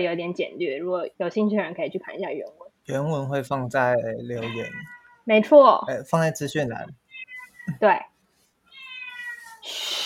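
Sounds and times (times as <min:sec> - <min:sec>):
speech: 0:00.0 - 0:07.0, 0:07.7 - 0:08.1, 0:09.6 - 0:10.0
cat meowing: 0:04.4 - 0:05.3, 0:07.1 - 0:07.8, 0:08.7 - 0:09.8.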